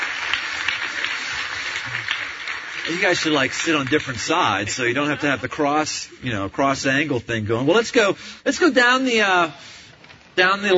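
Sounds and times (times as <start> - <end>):
audience applause at a community event: 0.0 - 5.6
speech: 2.9 - 9.8, 10.4 - 10.7.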